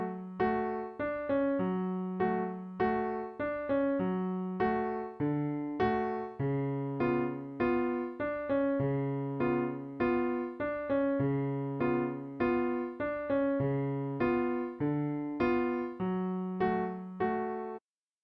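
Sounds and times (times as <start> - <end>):
piano march loop: 0.0 - 17.8.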